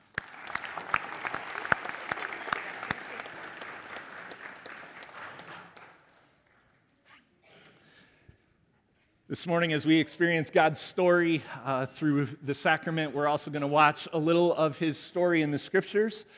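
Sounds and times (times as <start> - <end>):
church congregation clapping in welcome: 0.0 - 6.7
speech: 9.3 - 16.3.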